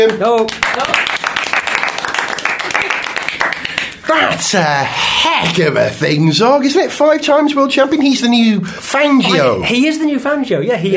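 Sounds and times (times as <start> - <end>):
speech: 0.0 - 1.1, 4.1 - 10.9
small round of applause: 0.0 - 4.0.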